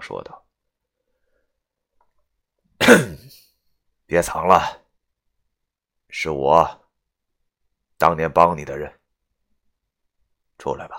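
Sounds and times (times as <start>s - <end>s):
speech: 0.0s - 0.4s, 2.9s - 3.5s, 4.1s - 4.8s, 6.1s - 6.8s, 8.0s - 9.0s, 10.6s - 10.9s
soft cough: 2.8s - 3.4s.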